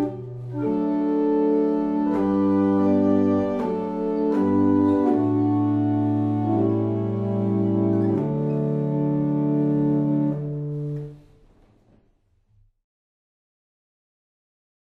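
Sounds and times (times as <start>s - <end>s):
barrel organs: 0.0s - 11.2s.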